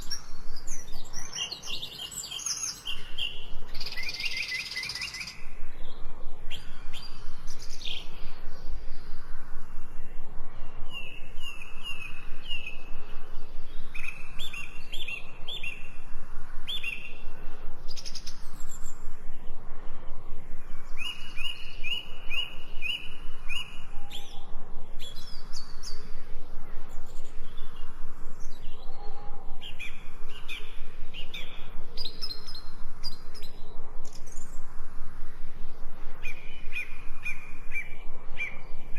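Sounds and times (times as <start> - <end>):
3D forest ambience: 0.0 - 38.9.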